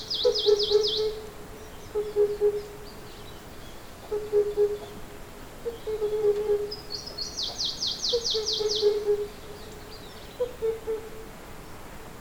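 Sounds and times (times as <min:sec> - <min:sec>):
Himalayan cuckoo: 0:00.0 - 0:03.4, 0:04.0 - 0:11.4.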